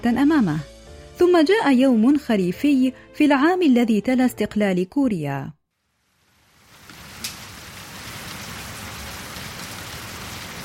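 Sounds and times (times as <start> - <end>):
speech: 0.0 - 5.6
rain falling during thunderstorm: 5.8 - 10.6.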